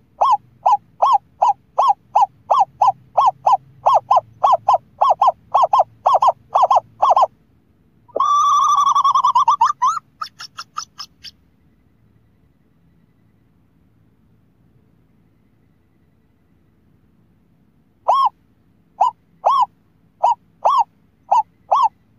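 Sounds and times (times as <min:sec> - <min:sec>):
scops owl hooting: 0:00.0 - 0:07.3, 0:08.1 - 0:11.4, 0:18.0 - 0:22.1.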